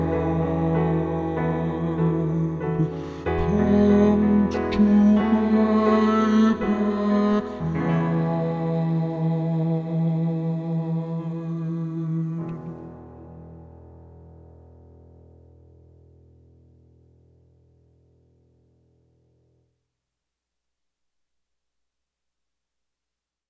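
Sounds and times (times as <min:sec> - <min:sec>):
baritone bass voice: 0:00.0 - 0:13.6.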